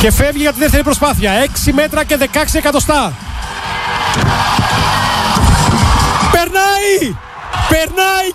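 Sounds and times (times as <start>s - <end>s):
speech: 0.0s - 3.3s, 4.2s - 4.6s, 6.5s - 8.3s
stadium crowd cheering and applauding: 1.8s - 8.3s.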